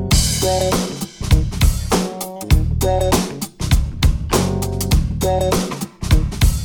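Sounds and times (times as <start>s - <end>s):
funky ringtone: 0.1s - 3.5s, 4.7s - 6.6s.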